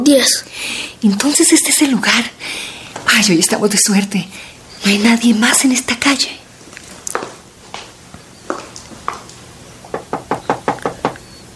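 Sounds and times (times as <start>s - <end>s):
speech: 0.1s - 6.4s
soft knocking on a door: 9.9s - 11.2s.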